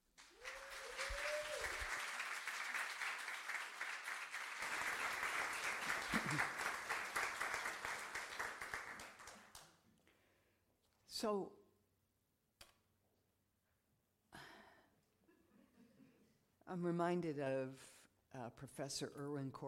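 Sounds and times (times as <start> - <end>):
congregation applauding to welcome a rabbi: 0.0 - 9.8
speech: 11.2 - 11.6, 16.7 - 19.6.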